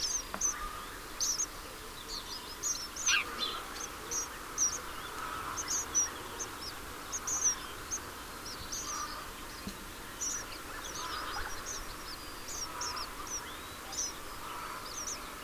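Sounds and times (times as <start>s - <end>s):
house sparrow chirping: 0.0s - 15.4s
low background noise: 0.0s - 15.4s.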